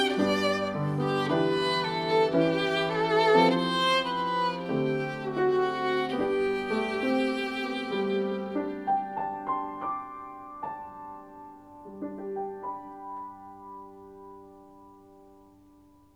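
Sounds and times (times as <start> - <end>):
violin: 0.0 - 10.2
piano: 0.0 - 16.1.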